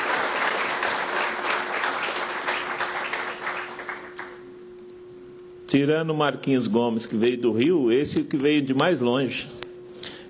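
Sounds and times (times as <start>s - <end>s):
audience applauding: 0.0s - 4.4s
faint steady hum: 0.0s - 10.2s
speech: 5.7s - 9.6s.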